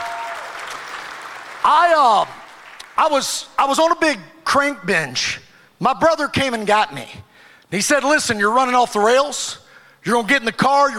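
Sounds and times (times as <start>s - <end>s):
audience applause, hand clapping: 0.0s - 3.0s
speech: 1.6s - 2.4s, 3.0s - 10.9s.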